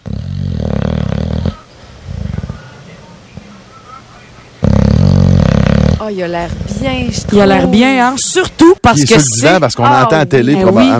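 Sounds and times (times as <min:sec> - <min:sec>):
bulldog snoring: 0:00.0 - 0:02.8, 0:04.6 - 0:08.0
speech: 0:06.1 - 0:10.9.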